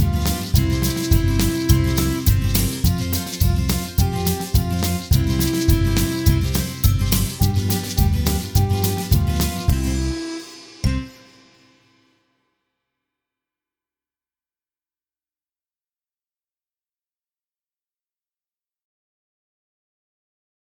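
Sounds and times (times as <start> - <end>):
backing track: 0.0 - 11.9.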